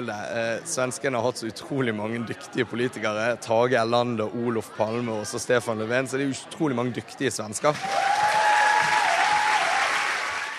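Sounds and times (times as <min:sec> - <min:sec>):
speech: 0:00.0 - 0:08.3
audience applause for speaker at podium: 0:07.7 - 0:10.5.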